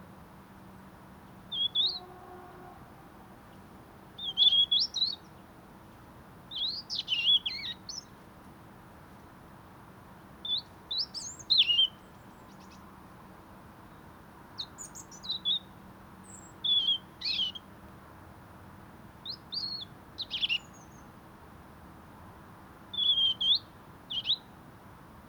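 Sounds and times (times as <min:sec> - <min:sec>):
European robin singing: 0:01.5 - 0:02.1, 0:04.2 - 0:05.3, 0:06.5 - 0:08.1, 0:10.4 - 0:12.8, 0:14.6 - 0:17.6, 0:19.2 - 0:21.1, 0:22.9 - 0:24.5.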